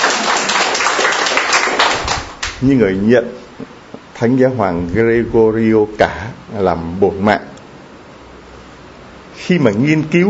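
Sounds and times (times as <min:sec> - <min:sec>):
Catholic church congregation applause honouring those with patron Saint Gregory the Great: 0:00.0 - 0:02.7
speech: 0:02.6 - 0:07.5, 0:09.5 - 0:10.2.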